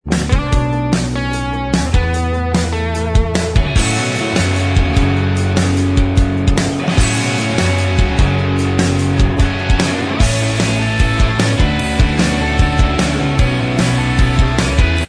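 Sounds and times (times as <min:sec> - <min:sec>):
instrumental music: 0:00.0 - 0:15.0.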